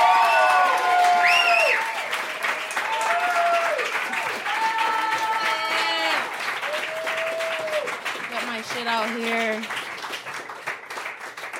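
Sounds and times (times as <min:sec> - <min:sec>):
whoops and cheers: 0:00.0 - 0:08.0
audience clapping: 0:00.0 - 0:11.5.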